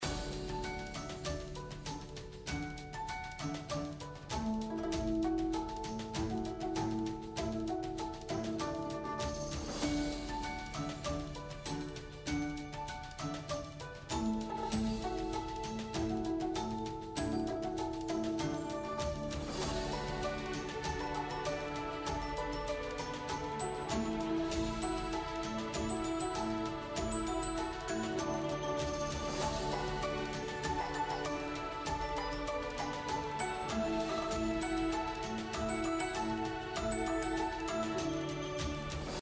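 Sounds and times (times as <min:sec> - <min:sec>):
background music for main UI: 0:00.0 - 0:39.2.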